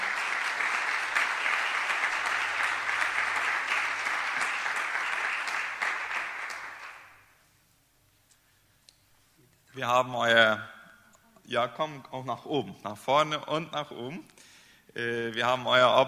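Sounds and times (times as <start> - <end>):
audience clapping loudly: 0.0 - 7.3
speech: 9.8 - 10.8, 11.5 - 16.0.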